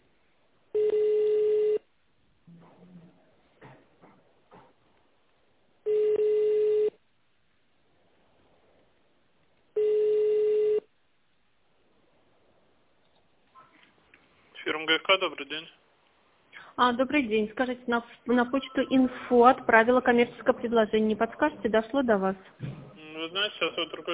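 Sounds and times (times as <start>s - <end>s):
telephone ringback tones: 0.8s - 1.8s, 5.8s - 7.0s, 9.8s - 10.9s
speech: 14.8s - 15.8s, 16.8s - 24.1s.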